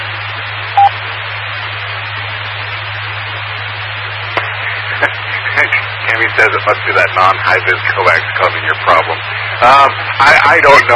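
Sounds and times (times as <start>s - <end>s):
low droning buzzing hum: 0.0s - 10.4s
constant hiss: 0.0s - 10.9s
radio repeater beep: 0.8s - 1.0s
speech: 5.0s - 10.9s.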